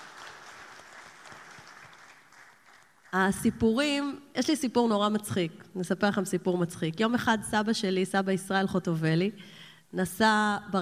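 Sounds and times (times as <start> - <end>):
audience applause: 0.0 - 3.2
speech: 3.1 - 10.8.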